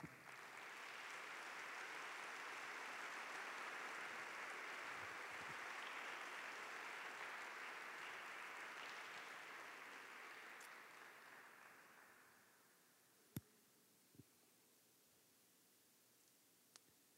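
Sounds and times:
audience applause: 0.0s - 12.6s.

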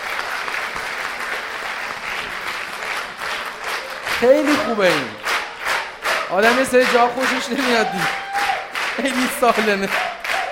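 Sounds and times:
audience applause: 0.0s - 10.5s
speech: 4.2s - 5.2s, 6.3s - 8.2s, 9.0s - 10.1s.

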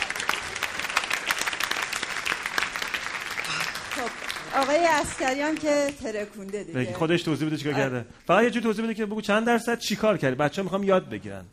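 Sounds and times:
room full of people applauding: 0.0s - 6.8s
speech: 4.0s - 11.5s.

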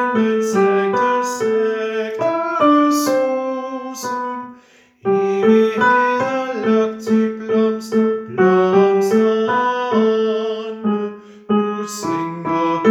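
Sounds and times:
tenor singing with choir: 0.0s - 12.8s.

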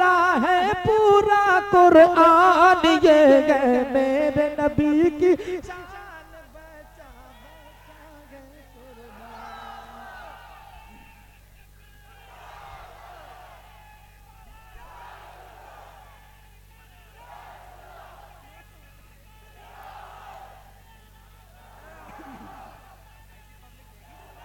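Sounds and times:
speech: 0.4s - 5.7s
faint crowd chanting a slogan at a religious gathering: 5.8s - 23.1s, 24.0s - 24.4s.

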